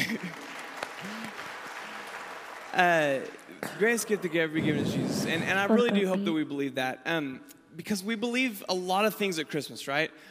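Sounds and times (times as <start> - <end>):
audience clapping: 0.0 - 5.0
speech: 2.8 - 10.3.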